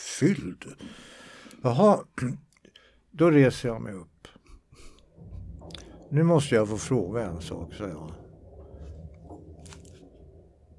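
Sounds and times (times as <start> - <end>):
speech: 0.2 - 1.0, 1.6 - 2.5, 3.1 - 4.1, 6.1 - 8.2
object being rolled across a floor by a neighbour: 4.8 - 10.7.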